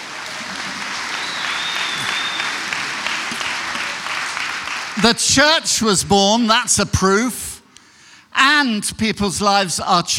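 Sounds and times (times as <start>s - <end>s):
audience clapping: 0.0s - 5.3s
speech: 5.0s - 7.4s, 8.6s - 10.1s.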